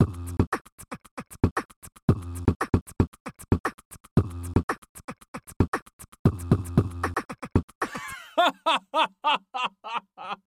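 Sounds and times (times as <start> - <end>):
beatbox loop with samples: 0.0 - 8.3
laughter: 8.0 - 10.4.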